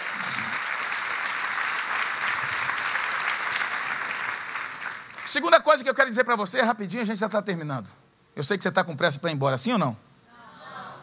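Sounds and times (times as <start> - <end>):
audience applauding: 0.0 - 5.5
speech: 5.3 - 10.1.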